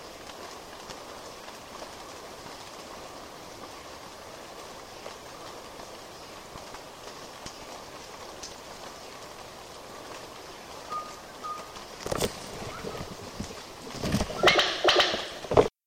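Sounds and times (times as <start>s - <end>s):
tanager Tangara fastuosa calling: 10.5s - 15.5s.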